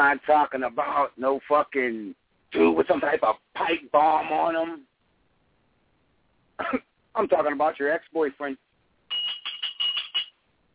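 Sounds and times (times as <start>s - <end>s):
speech: 0.0s - 4.9s, 6.6s - 8.6s
bell ringing: 9.1s - 10.4s.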